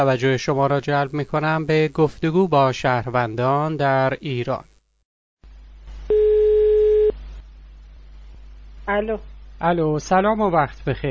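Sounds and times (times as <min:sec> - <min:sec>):
speech: 0:00.0 - 0:04.7, 0:08.9 - 0:11.0
ringback tone of an outgoing telephone call: 0:06.1 - 0:07.1.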